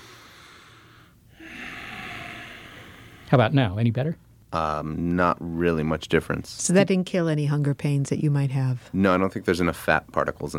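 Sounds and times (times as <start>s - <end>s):
person drawing a breath of air: 0.0s - 3.3s
speech: 3.3s - 10.5s.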